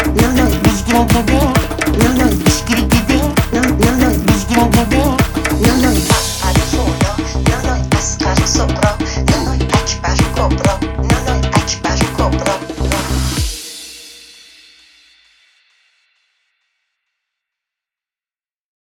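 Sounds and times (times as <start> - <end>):
new dance music: 0.0 - 13.7.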